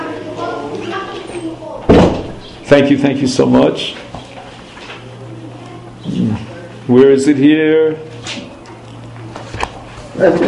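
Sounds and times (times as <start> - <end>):
low voices murmuring: 0.0 - 10.4
door closing with a sharp loud thud: 1.8 - 2.5
speech: 2.7 - 4.1, 6.2 - 8.1, 10.2 - 10.4.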